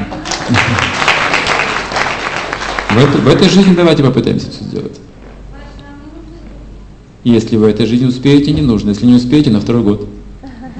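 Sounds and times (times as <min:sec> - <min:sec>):
audience applause: 0:00.0 - 0:04.1
speech: 0:00.5 - 0:00.9, 0:02.9 - 0:05.1, 0:07.2 - 0:10.2.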